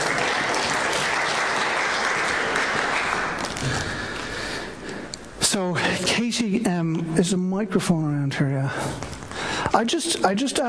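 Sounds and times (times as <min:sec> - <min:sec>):
audience applause: 0:00.0 - 0:04.6
speech: 0:06.3 - 0:10.6.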